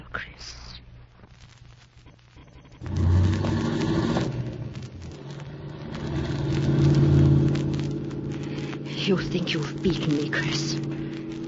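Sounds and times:
car engine starting and driving off: 2.8 - 11.4
speech: 9.1 - 11.0.

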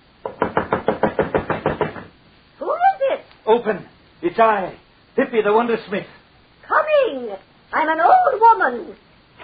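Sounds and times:
knocking on a wooden door: 0.2 - 2.2
speech: 3.5 - 6.2, 7.0 - 9.1.

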